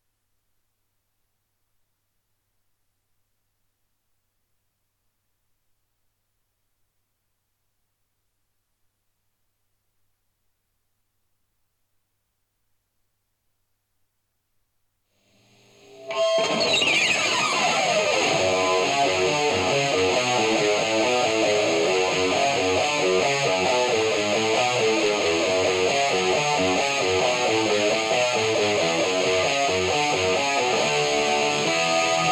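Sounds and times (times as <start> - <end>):
guitar: 15.4 - 32.3.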